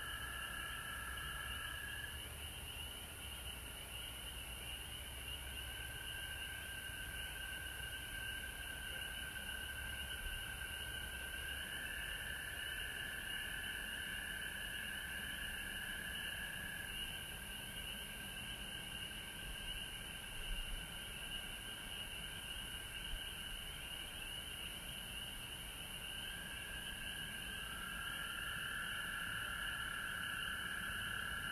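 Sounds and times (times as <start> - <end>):
frog chorus trilling: 0.0 - 31.4.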